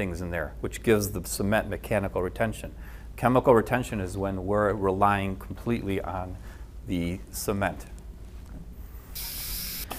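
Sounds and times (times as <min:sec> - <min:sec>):
speech: 0:00.0 - 0:07.9
dental air and water spray cleaning a crown: 0:09.2 - 0:09.9.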